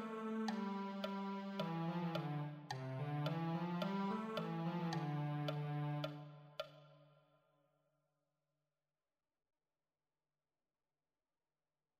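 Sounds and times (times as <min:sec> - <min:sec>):
cello: 0:00.0 - 0:06.9.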